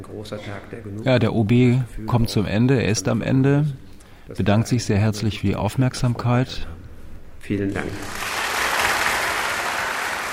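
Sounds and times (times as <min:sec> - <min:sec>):
speech: 0:00.0 - 0:06.8, 0:07.4 - 0:08.3
applause for the mayor at a ceremony: 0:07.9 - 0:10.3.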